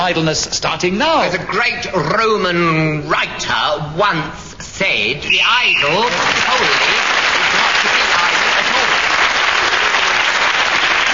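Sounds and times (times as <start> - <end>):
speech: 0.0 - 7.0
audience applause: 5.9 - 11.1.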